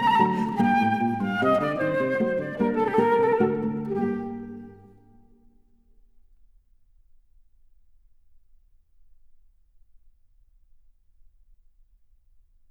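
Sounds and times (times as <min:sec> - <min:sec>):
presto flute sonata: 0:00.0 - 0:05.0.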